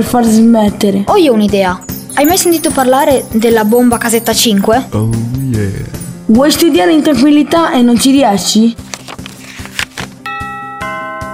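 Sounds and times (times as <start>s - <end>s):
speech: 0.0s - 9.1s
rhythmic music: 1.6s - 6.6s
doorbell chiming: 1.8s - 4.9s, 10.3s - 11.3s.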